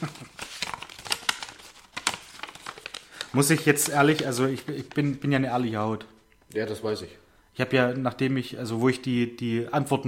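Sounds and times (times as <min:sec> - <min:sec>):
speech: 0:00.0 - 0:00.2, 0:03.3 - 0:10.0
question card pulled from a paper envelope: 0:00.0 - 0:05.2.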